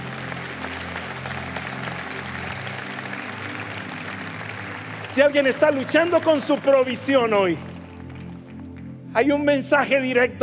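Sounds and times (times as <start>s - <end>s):
audience applause: 0.0s - 8.9s
speech: 5.2s - 7.7s, 9.2s - 10.4s.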